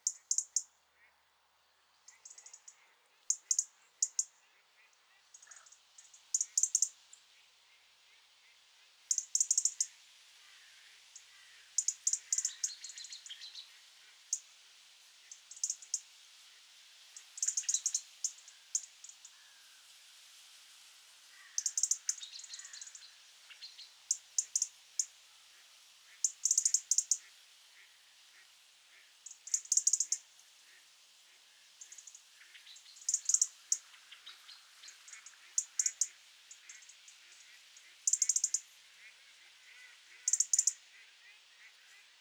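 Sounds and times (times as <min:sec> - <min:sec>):
European robin sharp dry ticking calls: 0:00.0 - 0:00.7, 0:02.1 - 0:04.4, 0:05.3 - 0:07.0, 0:09.1 - 0:09.9, 0:11.8 - 0:13.6, 0:15.5 - 0:16.0, 0:17.4 - 0:19.5, 0:21.4 - 0:25.1, 0:26.2 - 0:27.3, 0:29.2 - 0:30.8, 0:31.8 - 0:39.1, 0:39.7 - 0:42.0
soft hiss: 0:00.0 - 0:42.2.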